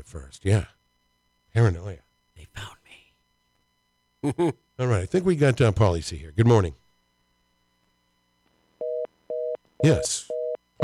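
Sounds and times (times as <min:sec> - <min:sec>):
speech: 0:00.1 - 0:00.8, 0:01.5 - 0:02.8, 0:04.2 - 0:06.8, 0:09.8 - 0:10.8
telephone busy signal: 0:08.8 - 0:10.8.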